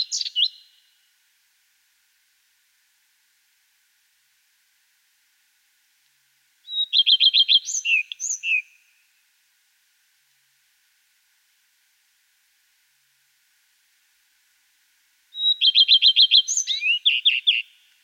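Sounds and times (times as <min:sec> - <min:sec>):
common redstart singing: 0:06.6 - 0:09.0, 0:15.3 - 0:17.9.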